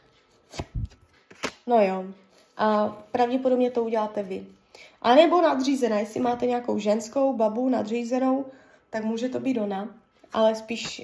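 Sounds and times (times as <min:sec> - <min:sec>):
tarot cards being drawn and laid down: 0:00.4 - 0:01.6
speech: 0:01.7 - 0:11.0.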